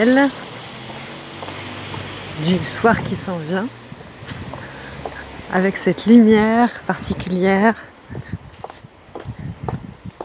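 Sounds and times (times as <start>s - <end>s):
speech: 0.0s - 0.4s, 2.4s - 3.8s, 5.5s - 8.3s
footsteps of a person walking outdoors: 0.0s - 2.4s, 4.0s - 5.3s, 7.0s - 10.2s.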